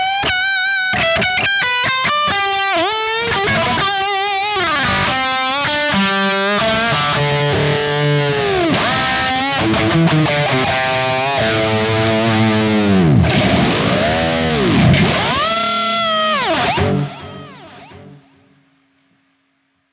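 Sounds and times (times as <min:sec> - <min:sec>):
Charvel Signature electric guitar high-gain lead on bridge and neck pickups: 0:00.0 - 0:18.8.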